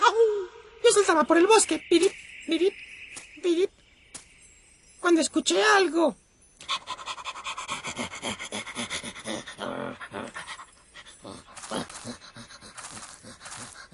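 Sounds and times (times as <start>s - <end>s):
speech: 1.0s - 3.8s, 5.0s - 6.2s
dog panting: 6.6s - 13.9s.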